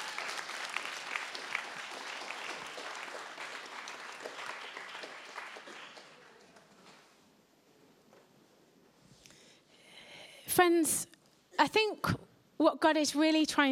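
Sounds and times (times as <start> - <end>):
audience round of applause: 0.0 - 6.8
speech: 10.6 - 13.7.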